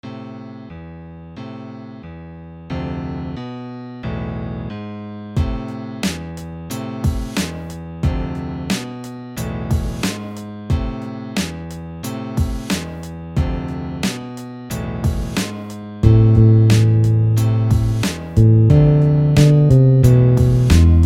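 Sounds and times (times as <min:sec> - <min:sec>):
rap beat: 0:05.4 - 0:21.0.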